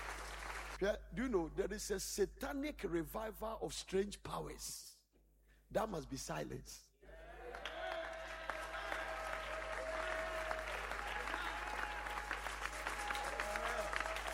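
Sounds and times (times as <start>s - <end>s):
audience clapping: 0.0s - 0.8s, 7.4s - 14.3s
speech: 0.8s - 4.9s, 5.7s - 7.2s.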